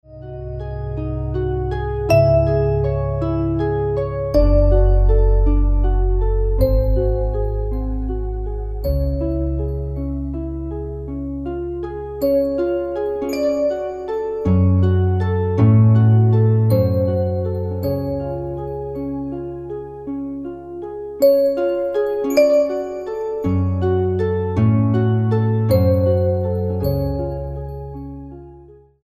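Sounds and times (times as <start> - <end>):
piano sonata: 0.0 - 29.0.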